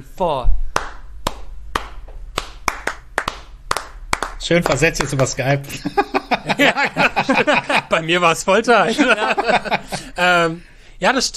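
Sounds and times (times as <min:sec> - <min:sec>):
speech: 0:00.0 - 0:00.6, 0:04.5 - 0:11.3
hands clapping a 3-2 clave rhythm: 0:00.7 - 0:05.5
laughter: 0:05.7 - 0:10.6.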